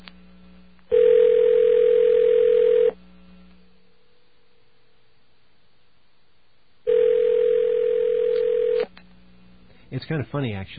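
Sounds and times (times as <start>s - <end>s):
telephone ringing: 0.9s - 3.0s, 6.9s - 8.9s
speech: 10.0s - 10.7s.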